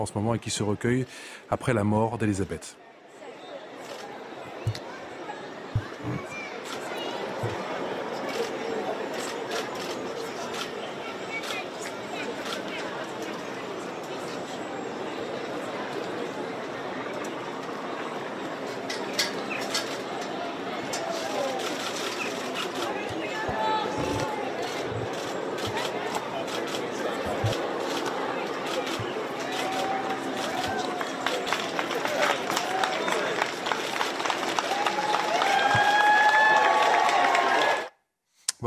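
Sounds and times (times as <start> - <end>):
speech: 0.0 - 2.9, 4.6 - 4.9, 6.0 - 6.3
scattered voices: 3.7 - 34.3
large outdoor crowd applauding in Windsor: 21.1 - 37.9.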